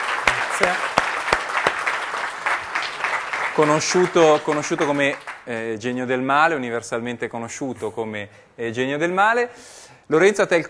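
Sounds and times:
audience applause: 0:00.0 - 0:05.5
speech: 0:00.6 - 0:00.9, 0:03.6 - 0:10.6.

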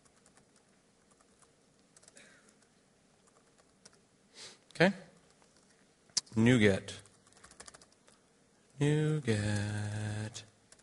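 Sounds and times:
computer keyboard typing on stage: 0:00.0 - 0:04.0, 0:07.0 - 0:08.2, 0:09.3 - 0:10.8
speech: 0:04.8 - 0:05.0, 0:06.4 - 0:07.0, 0:08.8 - 0:10.5.

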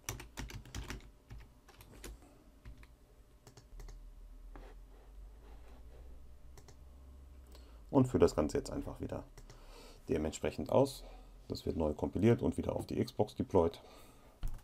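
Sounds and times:
typing code on a computer keyboard: 0:00.0 - 0:04.0, 0:06.5 - 0:06.8, 0:14.4 - 0:14.6
speech: 0:07.9 - 0:09.5, 0:10.1 - 0:14.1.

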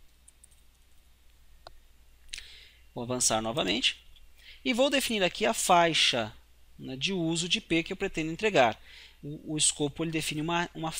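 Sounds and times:
low steady hum: 0:00.0 - 0:10.9
computer mouse clicks setting up a DHCP scope: 0:00.1 - 0:01.0
speech: 0:03.0 - 0:04.0, 0:04.6 - 0:10.9.

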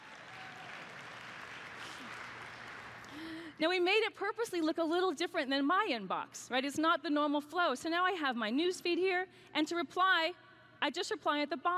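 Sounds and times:
audience clapping: 0:00.0 - 0:03.5
speech: 0:03.6 - 0:11.7.

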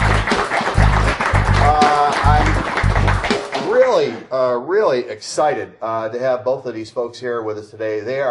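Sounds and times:
audience applauding: 0:00.0 - 0:04.2
low thumping beat: 0:00.0 - 0:04.2
voices cheering: 0:00.0 - 0:04.2
speech: 0:04.0 - 0:08.2.

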